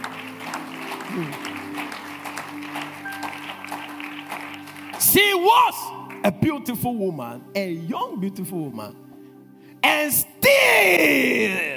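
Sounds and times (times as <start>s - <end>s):
audience clapping: 0.0s - 6.4s
speech: 1.1s - 1.5s, 5.1s - 9.0s, 10.1s - 11.7s.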